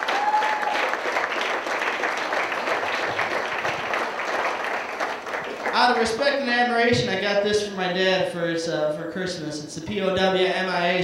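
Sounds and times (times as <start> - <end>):
audience applause for veterans at a comedy night in Muskegon: 0.0 - 6.5
speech: 5.8 - 11.0.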